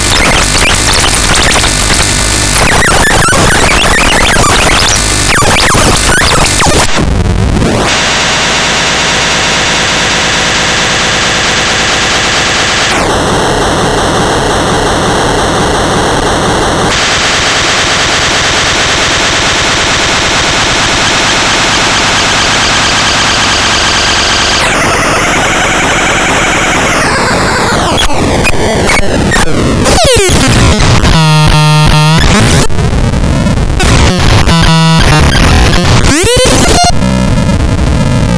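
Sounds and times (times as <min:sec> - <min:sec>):
circuit bent Gameboy industrial glitch sounds: 0:00.0 - 0:38.3.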